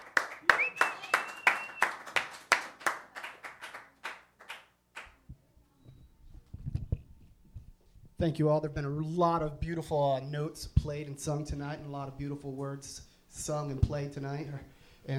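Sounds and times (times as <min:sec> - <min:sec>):
audience applause welcoming a speaker at an evening music and poetry event: 0:00.0 - 0:04.6
speech: 0:08.2 - 0:15.1.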